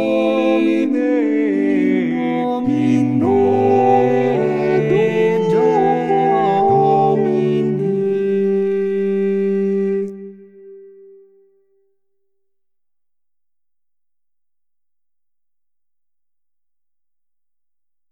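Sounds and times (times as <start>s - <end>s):
equal voices singing: 0.0s - 10.9s.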